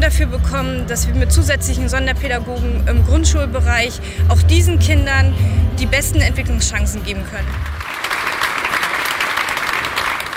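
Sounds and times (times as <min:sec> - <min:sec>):
speech: 0:00.1 - 0:07.8
audience applause for award winner: 0:07.5 - 0:10.3.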